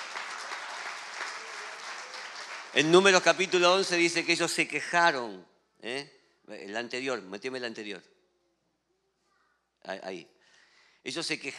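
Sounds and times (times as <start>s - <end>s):
audience applause: 0.0s - 4.5s
speech: 2.8s - 8.1s, 9.8s - 10.4s, 11.0s - 11.5s.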